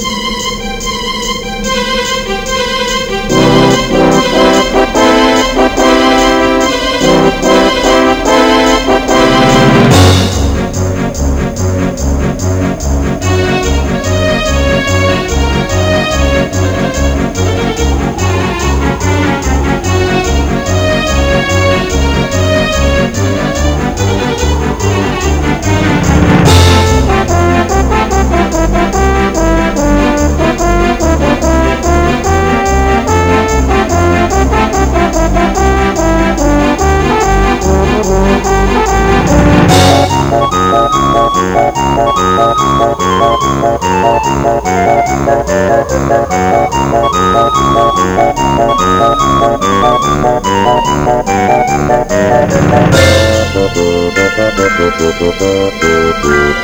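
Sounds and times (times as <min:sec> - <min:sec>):
Christmas music: 0:00.0 - 0:56.6.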